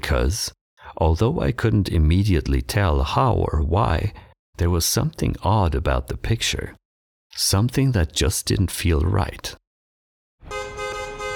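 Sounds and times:
speech: 0.1 - 6.8, 7.4 - 9.6
taxi cab honking its horn: 10.4 - 11.3.

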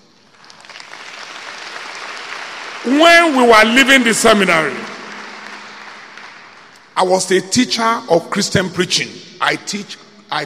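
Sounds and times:
audience clapping: 0.2 - 7.0
speech: 2.8 - 4.9, 7.0 - 10.4.

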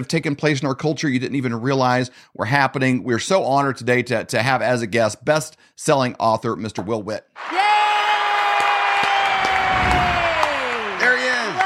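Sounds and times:
speech: 0.0 - 7.9
audience applause: 7.4 - 11.6.

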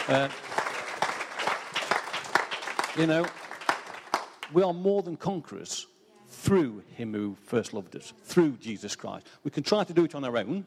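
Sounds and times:
round of applause: 0.0 - 4.7
speech: 0.1 - 0.6, 3.0 - 3.4, 4.5 - 10.6.

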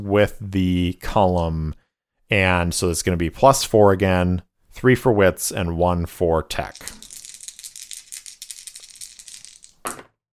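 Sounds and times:
speech: 0.0 - 7.0
dice rattling and clattering: 6.6 - 10.1.

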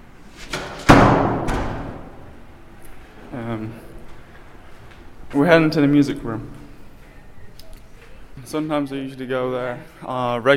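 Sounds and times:
door shutting: 0.4 - 2.2
speech: 3.4 - 3.9, 5.3 - 6.6, 8.5 - 10.5.

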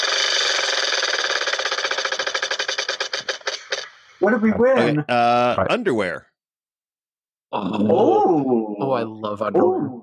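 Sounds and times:
prize wheel spinning: 0.0 - 3.5
speech: 4.2 - 6.3, 7.5 - 10.0.

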